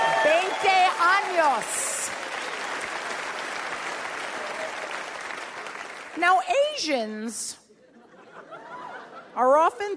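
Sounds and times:
audience applause and clapping: 0.0 - 6.2
speech: 1.4 - 1.9, 6.2 - 7.6, 9.4 - 9.9
laughter: 7.7 - 9.9.

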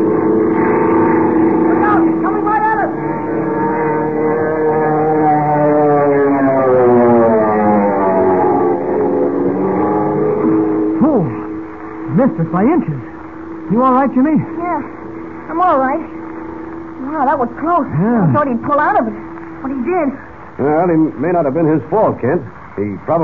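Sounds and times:
monoplane engine roaring in a power dive: 0.0 - 22.8
wind screaming through the struts: 1.4 - 11.0
speech: 12.4 - 13.0, 13.7 - 14.6, 17.3 - 23.2.

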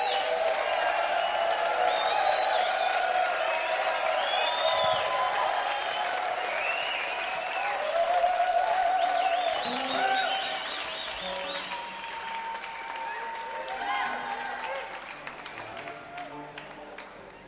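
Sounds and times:
whoops and whistles: 0.0 - 3.1, 4.0 - 13.2
audience clapping for a youth band: 0.0 - 17.4.

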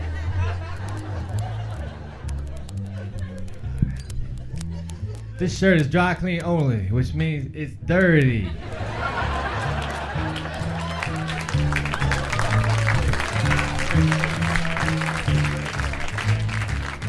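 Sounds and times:
laughter: 0.0 - 5.4, 8.4 - 17.0
speech: 5.4 - 8.7
audience applause: 8.9 - 17.0.

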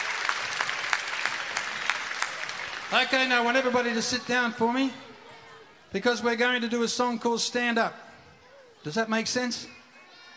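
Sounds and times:
audience applause: 0.0 - 4.3
speech: 2.9 - 5.0, 5.9 - 8.0, 8.8 - 9.8.

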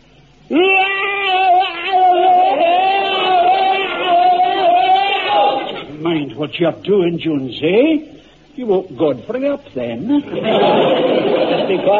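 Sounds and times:
bayonet drill battle scream: 0.5 - 5.9
laughter: 1.2 - 5.9, 10.1 - 11.9
speech: 6.4 - 11.9.

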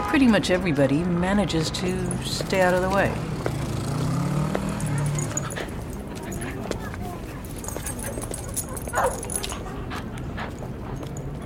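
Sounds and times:
speech: 0.1 - 3.4
dogs barking at cars: 4.5 - 11.3.

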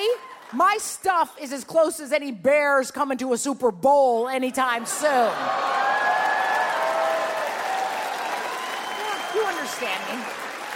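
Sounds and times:
speech: 0.5 - 5.8, 9.4 - 10.4
audience applauding: 5.4 - 10.7
faint cheers: 5.4 - 10.7.

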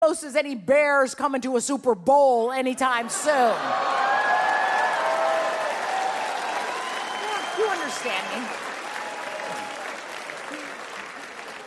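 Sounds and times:
speech: 0.1 - 4.1, 7.6 - 8.7
audience applause: 3.6 - 11.6.

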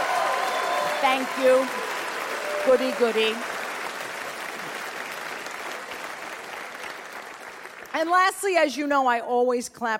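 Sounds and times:
live audience applause: 0.0 - 8.1
speech: 1.0 - 1.9, 2.6 - 3.5, 8.0 - 9.9.

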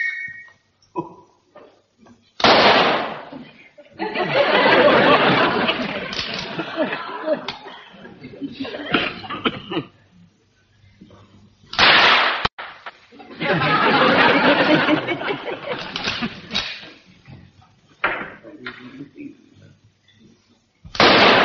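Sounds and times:
rifle shots fired on a range: 2.4 - 3.3, 11.8 - 12.8, 20.9 - 21.4
laughter: 3.3 - 9.5, 13.1 - 17.1.

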